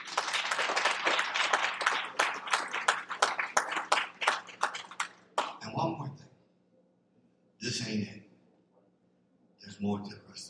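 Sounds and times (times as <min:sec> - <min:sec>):
audience applause: 0:00.0 - 0:05.6
speech: 0:07.7 - 0:08.2, 0:09.8 - 0:10.2.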